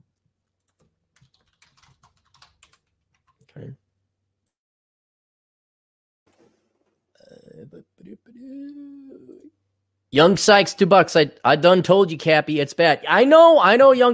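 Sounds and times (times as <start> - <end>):
note being typed on a computer keyboard: 0.6 - 3.4
speech: 3.6 - 3.8, 10.1 - 14.1.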